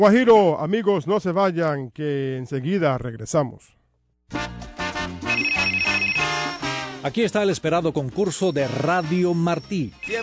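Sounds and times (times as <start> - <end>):
speech: 0.0 - 4.7, 7.0 - 10.2
electronic telephone ring: 5.3 - 6.9, 10.0 - 10.2.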